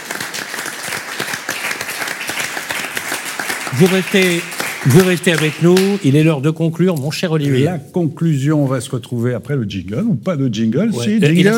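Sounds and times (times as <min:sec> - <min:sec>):
audience applause: 0:00.0 - 0:06.3
speech: 0:03.8 - 0:11.5.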